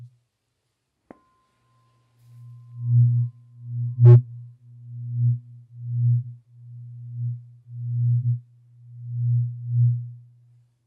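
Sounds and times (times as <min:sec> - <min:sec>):
singing bowl hum: 0:01.1 - 0:10.6
tuning fork tone: 0:01.1 - 0:10.6.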